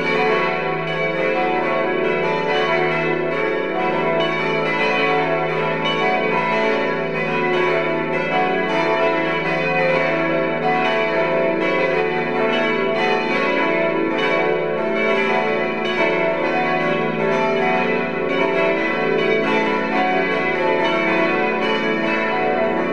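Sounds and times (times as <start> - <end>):
church bells ringing: 0.0 - 22.9.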